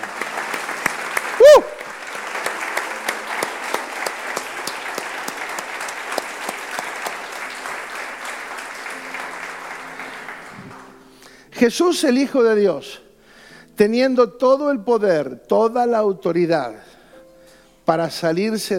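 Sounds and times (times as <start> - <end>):
audience applauding: 0.0 - 11.3
loud whoop or cheer: 1.4 - 1.9
speech: 11.6 - 13.0, 13.8 - 16.9, 17.9 - 18.7.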